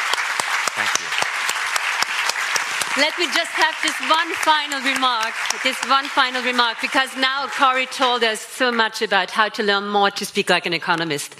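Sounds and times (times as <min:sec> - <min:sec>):
warm audience applause: 0:00.0 - 0:08.4
speech: 0:03.0 - 0:11.3.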